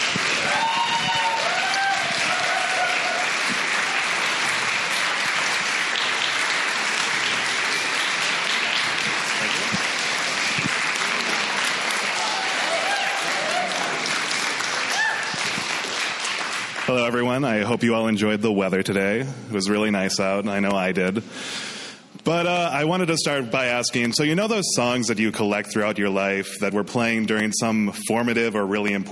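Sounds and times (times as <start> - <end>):
audience clapping at a storytelling event: 0.0 - 17.6
speech: 17.2 - 21.6, 22.3 - 29.1.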